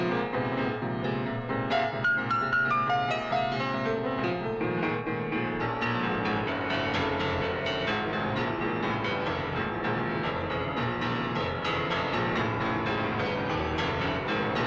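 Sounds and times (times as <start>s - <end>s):
piano percussion: 0.0s - 14.6s.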